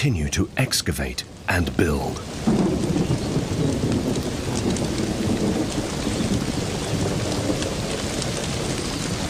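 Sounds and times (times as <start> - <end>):
speech: 0.0 - 2.7
heavy rain downpour: 0.0 - 9.2
thunder: 2.3 - 9.2.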